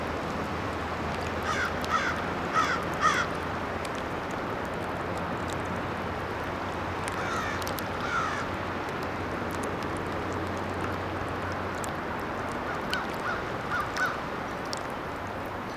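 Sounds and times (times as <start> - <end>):
water lapping ice by the Mississippi: 0.0 - 15.7
crow-like caws: 1.4 - 3.3, 7.2 - 8.5, 13.0 - 14.2.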